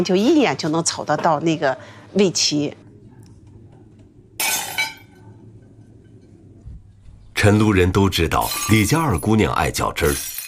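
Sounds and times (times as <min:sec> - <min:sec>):
speech: 0:00.0 - 0:02.8, 0:07.4 - 0:10.3
low hum: 0:00.0 - 0:10.4
kiln-fired porcelain piece smashed at a family porcelain workshop in Chenlu ancient town: 0:04.4 - 0:05.1, 0:10.0 - 0:10.4.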